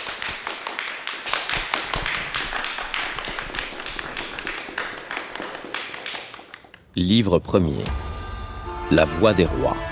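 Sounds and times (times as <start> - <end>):
audience applause: 0.0 - 6.8
speech: 7.0 - 8.0, 8.9 - 9.8.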